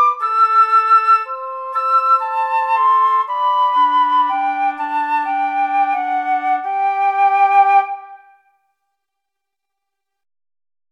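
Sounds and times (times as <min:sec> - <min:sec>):
oboe playing a courtly dance: 0:00.0 - 0:08.6
flute playing a courtly dance: 0:00.0 - 0:08.7.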